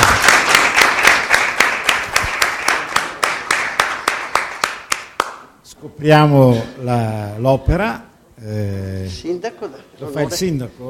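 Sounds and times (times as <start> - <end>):
crowd applauding: 0.0 - 5.5
speech: 6.0 - 10.8.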